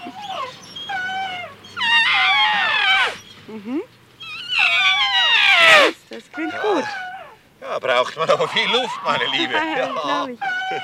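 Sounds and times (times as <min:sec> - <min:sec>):
speech: 0:00.0 - 0:00.4, 0:07.8 - 0:10.8
baby elephant trumpeting, calling for mother: 0:01.8 - 0:03.3, 0:04.3 - 0:07.4, 0:08.2 - 0:10.8.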